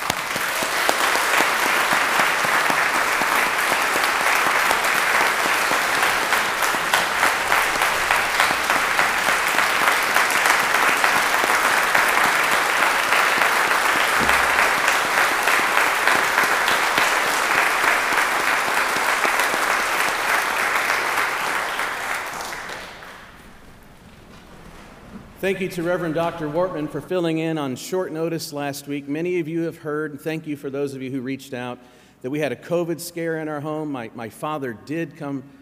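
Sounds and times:
round of applause: 0:00.0 - 0:27.0
speech: 0:25.4 - 0:35.6.

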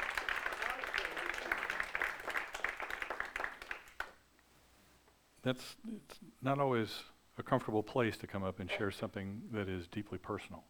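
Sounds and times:
audience clapping: 0:00.0 - 0:04.2
speech: 0:05.4 - 0:10.6.

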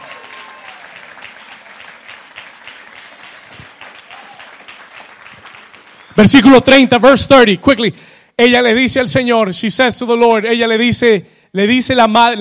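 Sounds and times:
loud applause: 0:00.0 - 0:06.9
speech: 0:06.2 - 0:12.4.

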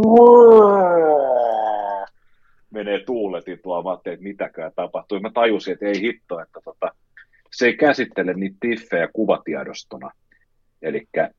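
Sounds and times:
speech: 0:00.0 - 0:00.5, 0:02.8 - 0:10.2, 0:10.8 - 0:11.3
voice imitating an old computer straining noisily: 0:00.0 - 0:02.1.

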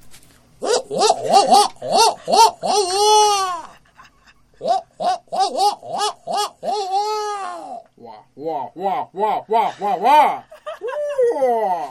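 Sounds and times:
person imitating barred owl call: 0:00.6 - 0:03.8, 0:04.6 - 0:11.8
laughter: 0:02.0 - 0:04.8, 0:09.5 - 0:11.8
speech: 0:09.2 - 0:10.5.

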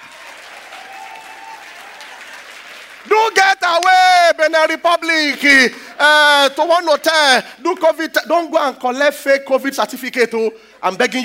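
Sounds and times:
audience applause: 0:00.0 - 0:04.2
speech: 0:03.0 - 0:11.2.

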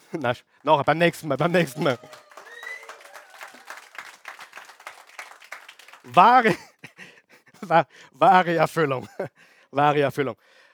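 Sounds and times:
audience clapping: 0:00.0 - 0:06.6
laughter: 0:00.0 - 0:07.7
speech: 0:00.1 - 0:02.2, 0:06.1 - 0:06.7, 0:07.7 - 0:10.6.

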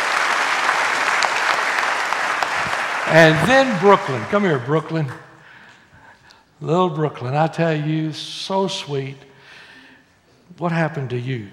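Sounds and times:
audience clapping: 0:00.0 - 0:05.2
speech: 0:03.1 - 0:05.2, 0:06.6 - 0:09.3, 0:10.6 - 0:11.5.

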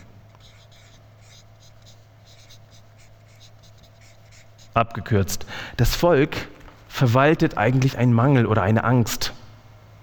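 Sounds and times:
pen strokes writing a word: 0:00.0 - 0:04.8
speech: 0:04.8 - 0:09.4.

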